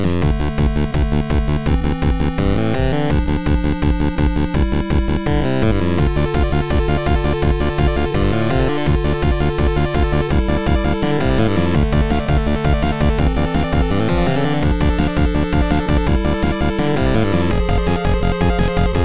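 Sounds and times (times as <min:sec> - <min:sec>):
8-bit battle music: 0:00.2 - 0:19.0.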